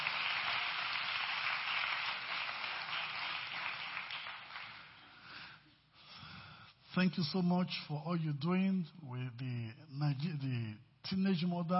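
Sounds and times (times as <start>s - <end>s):
audience clapping: 0.0s - 5.4s
speech: 7.0s - 11.7s.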